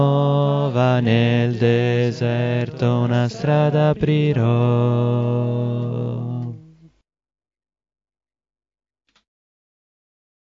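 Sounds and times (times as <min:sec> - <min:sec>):
contralto voices singing: 0:00.0 - 0:07.0.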